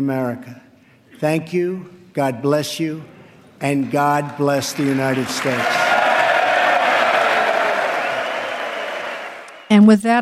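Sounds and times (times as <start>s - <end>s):
speech: 0.0s - 5.8s, 9.7s - 10.2s
large crowd applause and cheering in a big indoor hall: 3.7s - 9.7s
scattered shouts: 5.6s - 9.4s.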